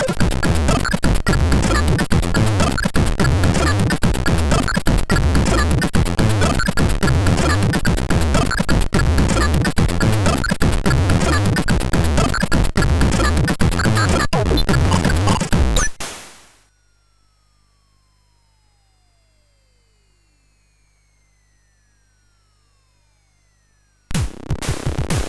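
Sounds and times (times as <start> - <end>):
MOS6581 chiptune music: 0.0 - 15.9.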